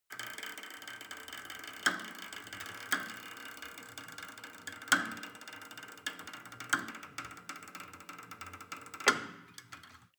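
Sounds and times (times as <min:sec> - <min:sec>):
cable machine creaking down: 0:00.1 - 0:10.1.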